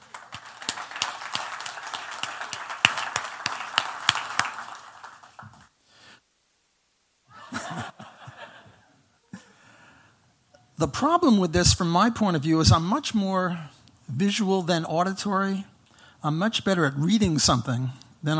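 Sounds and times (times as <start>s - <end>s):
audience applause: 0.0s - 5.7s
laughter: 7.3s - 9.5s
speech: 10.8s - 18.3s.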